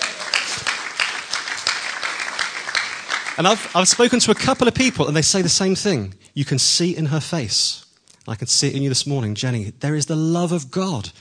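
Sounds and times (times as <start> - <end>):
audience cheering and applauding: 0.0 - 5.1
speech: 3.4 - 11.1.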